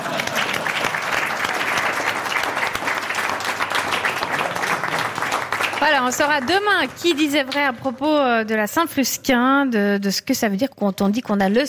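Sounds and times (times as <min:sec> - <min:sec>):
audience applause: 0:00.0 - 0:07.6
speech: 0:05.8 - 0:11.6.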